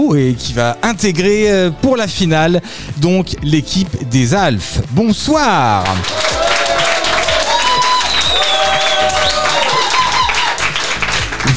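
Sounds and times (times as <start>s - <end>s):
speech: 0.0s - 6.4s
pulsing music beat: 1.0s - 11.5s
live studio audience applauding at a televised academy competition final: 5.6s - 11.5s.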